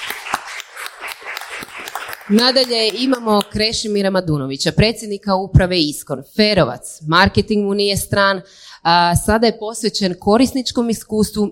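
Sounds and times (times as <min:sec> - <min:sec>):
audience clapping to honour a presenter: 0:00.0 - 0:03.6
speech: 0:02.3 - 0:11.5.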